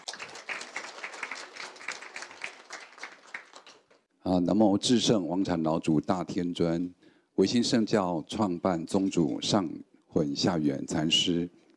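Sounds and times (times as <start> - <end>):
audience applause: 0.0 - 4.0
speech: 4.2 - 11.6.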